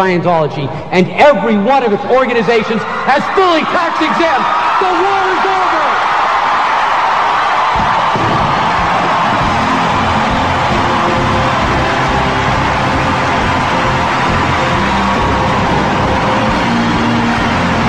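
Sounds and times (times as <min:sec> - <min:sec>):
speech: 0:00.0 - 0:05.5
large crowd applauding: 0:03.5 - 0:17.8.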